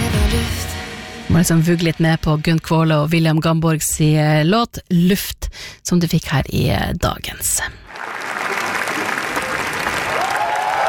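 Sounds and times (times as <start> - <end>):
speech: 1.4 - 8.2
Cannes film festival audience applause and cheering: 7.9 - 10.8.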